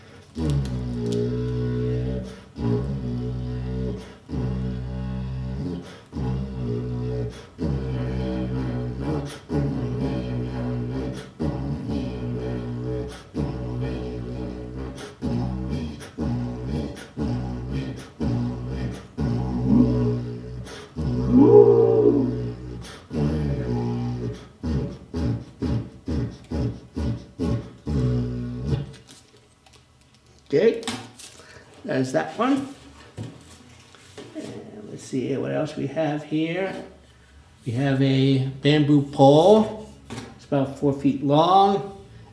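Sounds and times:
homemade cardboard paper-towel-tube didgeridoo droning: 0.4 - 29.0
speech: 32.0 - 32.7, 35.2 - 37.0, 37.6 - 39.8, 40.5 - 42.0.

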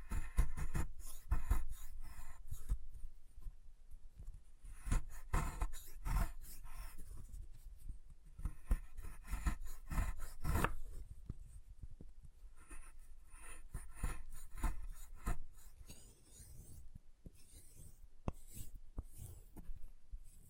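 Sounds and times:
chalk being carved and cut: 0.0 - 2.8, 4.7 - 7.3, 8.4 - 11.0, 12.6 - 20.4.

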